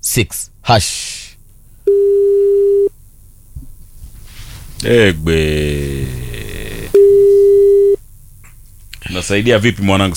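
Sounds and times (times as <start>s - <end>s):
speech: 0.0s - 1.2s, 4.8s - 6.2s, 9.2s - 10.1s
low noise: 0.0s - 10.1s
telephone beep after a call is cut off: 7.0s - 8.0s.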